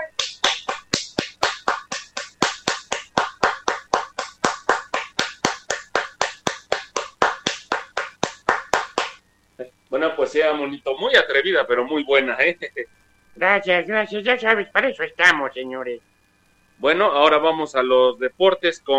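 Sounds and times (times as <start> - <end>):
applause: 0.2 - 9.2
speech: 9.9 - 16.1, 16.8 - 18.9.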